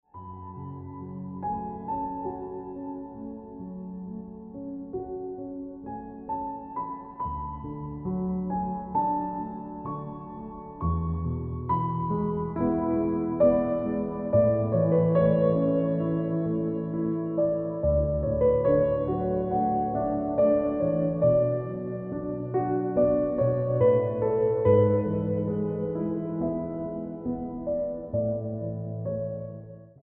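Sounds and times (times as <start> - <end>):
piano ringtone music: 0.2 - 29.9.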